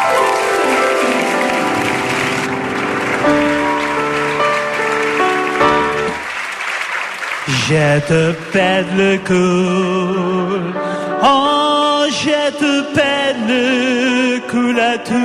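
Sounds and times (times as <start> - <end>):
audience applause: 0.0 - 10.3
speech: 7.7 - 15.2.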